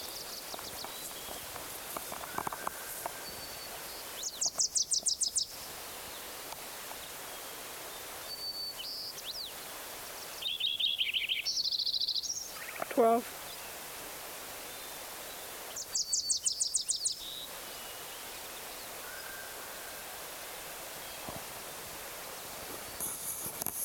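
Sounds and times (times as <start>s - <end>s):
Wilson's warbler song: 0.0s - 13.9s, 14.5s - 23.8s
soft hiss: 0.0s - 23.8s.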